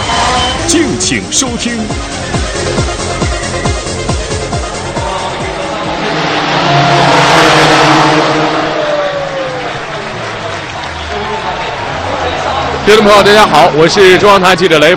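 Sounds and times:
race car engines roaring at the 61st Macau Grand Prix: 0.0 - 14.9
speech: 0.7 - 3.1, 12.9 - 14.9
race car speeding past: 4.8 - 13.8.

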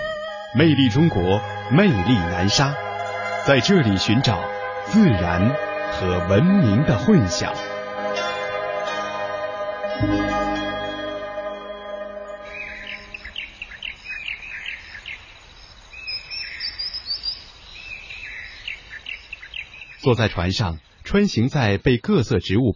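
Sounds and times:
sustained musical tones: 0.0 - 13.8
speech: 0.6 - 2.8, 3.4 - 7.7, 10.0 - 10.3, 20.1 - 22.7
bird chirps and twittering calls in a wetland: 12.4 - 21.1.

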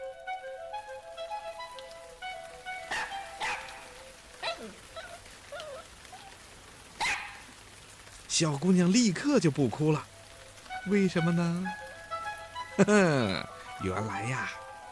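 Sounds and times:
soft melodic tune: 0.0 - 4.5, 9.3 - 14.9
water spraying from a watering can: 0.6 - 14.9
dog barking and yelping: 2.9 - 6.4, 7.0 - 7.6
speech: 8.4 - 10.1, 10.8 - 11.8, 12.8 - 14.6.

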